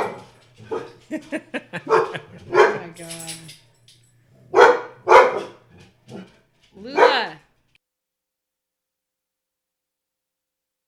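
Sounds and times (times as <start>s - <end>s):
dog barking and yipping: 0.0s - 1.1s, 1.7s - 3.0s, 4.5s - 7.4s
laughter: 1.1s - 2.9s
speech: 1.1s - 3.6s.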